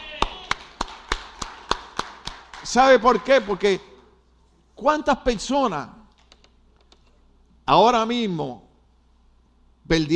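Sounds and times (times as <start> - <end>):
person clapping: 0.0 - 2.8
speech: 2.6 - 3.9, 4.8 - 6.0, 7.7 - 8.6, 9.9 - 10.1.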